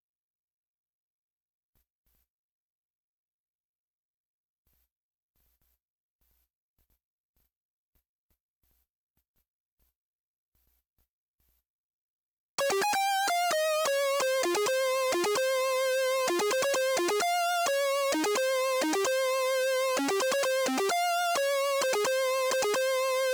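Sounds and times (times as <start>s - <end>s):
melody: 12.6s - 23.3s.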